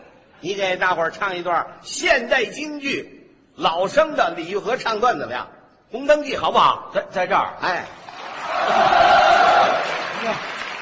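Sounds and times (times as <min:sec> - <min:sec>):
speech: 0:00.4 - 0:08.0, 0:08.6 - 0:08.9, 0:10.2 - 0:10.5
audience cheering at a live event: 0:08.1 - 0:10.8.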